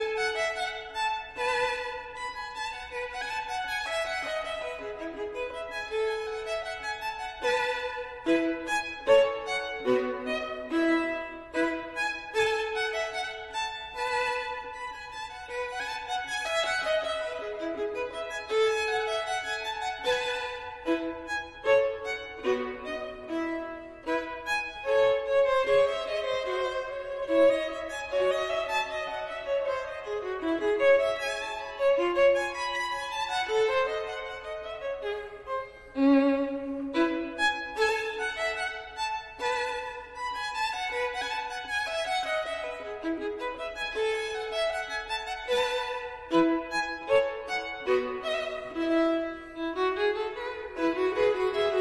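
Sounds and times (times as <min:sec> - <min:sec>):
violin: 0:00.0 - 0:51.7.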